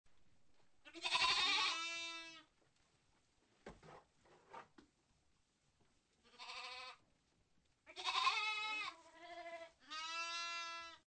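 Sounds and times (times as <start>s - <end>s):
goat: 0.8s - 2.5s, 7.9s - 11.0s.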